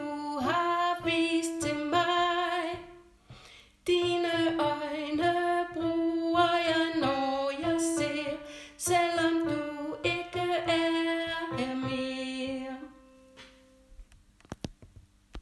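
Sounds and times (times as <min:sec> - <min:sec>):
person singing: 0:00.0 - 0:03.0, 0:03.9 - 0:13.0.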